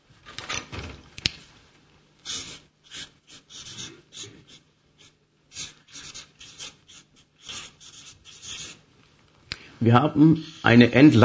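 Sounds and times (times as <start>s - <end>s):
pen scratching on paper while writing by hand: 2.3s - 4.6s, 5.5s - 8.8s
speech: 9.8s - 11.2s.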